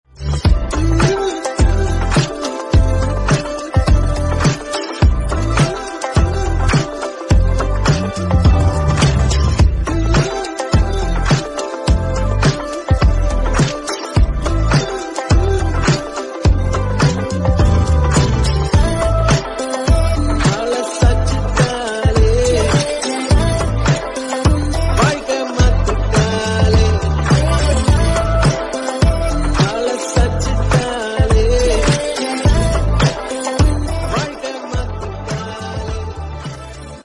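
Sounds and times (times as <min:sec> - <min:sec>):
instrumental music: 0:00.1 - 0:37.0.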